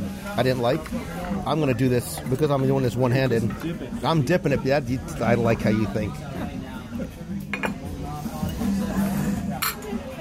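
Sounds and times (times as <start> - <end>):
speech: 0.3 - 7.2
fork scraping gravy off a plate of brisket at Nomad Lounge: 8.0 - 9.9.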